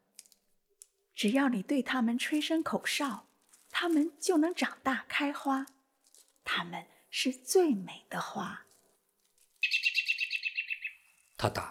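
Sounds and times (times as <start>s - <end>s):
speech: 1.2s - 5.8s, 6.5s - 8.6s, 11.4s - 11.6s
robin calling: 9.6s - 11.5s.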